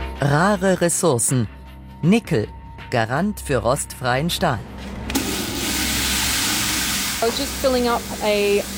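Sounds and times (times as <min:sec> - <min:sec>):
speech: 0:00.2 - 0:04.8, 0:07.2 - 0:08.7
water filling a watering can: 0:05.1 - 0:08.7.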